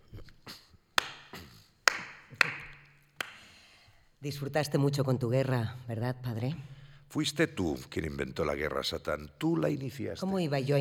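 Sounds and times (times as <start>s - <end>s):
slow hand clapping: 1.0s - 3.6s
speech: 4.2s - 10.7s.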